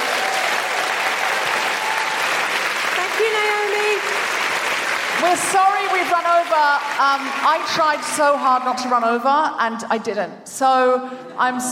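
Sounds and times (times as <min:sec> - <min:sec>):
audience applause at the South Bank Centre: 0:00.0 - 0:09.1
speech: 0:05.2 - 0:11.7.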